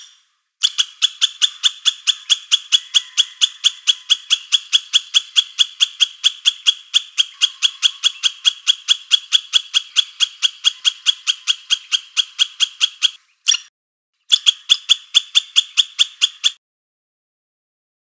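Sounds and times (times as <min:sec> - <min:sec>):
squirrel chattering: 0:00.6 - 0:13.7, 0:14.3 - 0:16.6.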